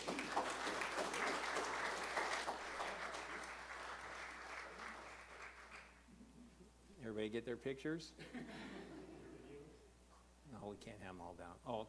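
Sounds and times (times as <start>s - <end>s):
audience applause: 0.0s - 6.0s
speech: 7.2s - 8.8s, 10.8s - 11.8s.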